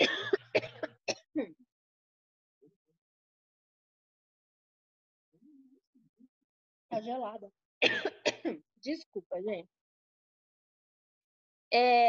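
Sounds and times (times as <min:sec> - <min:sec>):
person coughing after choking on a drink: 0:00.0 - 0:01.3, 0:07.8 - 0:08.6
speech: 0:06.9 - 0:09.8, 0:11.7 - 0:12.0.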